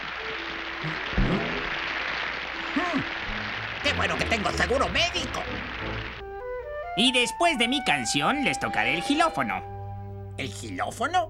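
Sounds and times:
audience applause: 0.0s - 6.3s
speech: 0.8s - 1.3s, 3.9s - 6.1s, 7.0s - 9.7s, 10.4s - 11.2s.

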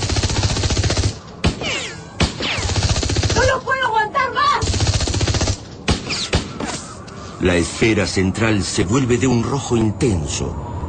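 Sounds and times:
automatic machine gun fire: 0.0s - 1.6s, 2.2s - 3.5s, 4.6s - 6.5s
whistling sweeping tones: 6.1s - 10.8s
speech: 7.4s - 10.7s.

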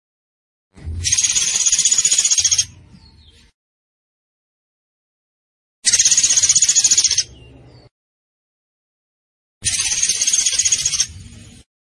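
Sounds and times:
zebra finch trilling: 1.0s - 2.8s, 5.8s - 7.4s, 9.6s - 11.1s.

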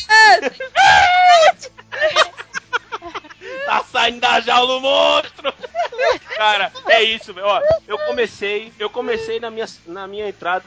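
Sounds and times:
excited vocal bursts: 0.1s - 2.2s, 6.7s - 9.4s
laughter: 0.4s - 8.4s
person screaming loudly: 0.8s - 1.6s
speech: 4.0s - 5.3s, 6.0s - 10.6s.

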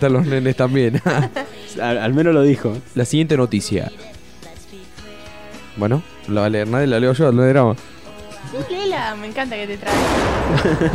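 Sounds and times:
laughter: 0.0s - 2.0s, 10.4s - 10.9s
speech: 0.0s - 4.2s, 5.8s - 10.9s
gunshot sound effects: 9.9s - 10.9s.

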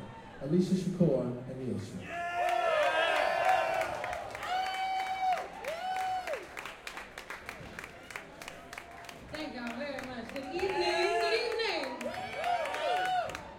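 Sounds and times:
speech: 0.4s - 2.3s
audience cheering: 2.0s - 7.3s, 10.1s - 13.5s
audience applause: 2.1s - 13.5s.

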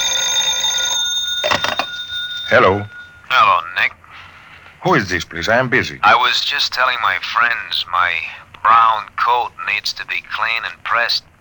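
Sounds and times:
telephone ringing: 0.0s - 3.6s
speech: 2.5s - 3.9s, 4.8s - 11.3s.

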